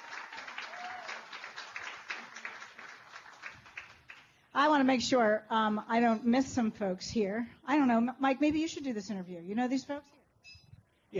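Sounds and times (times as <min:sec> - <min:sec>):
crowd round of applause: 0:00.0 - 0:04.2
speech: 0:04.6 - 0:10.6.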